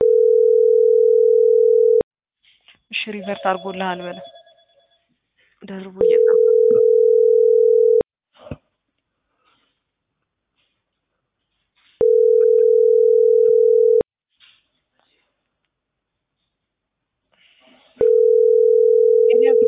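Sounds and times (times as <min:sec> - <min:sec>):
telephone ringback tone while a call connects: 0:00.0 - 0:02.0, 0:06.0 - 0:08.0, 0:12.0 - 0:14.0, 0:18.0 - 0:19.6
speech: 0:03.1 - 0:04.3, 0:05.6 - 0:07.0.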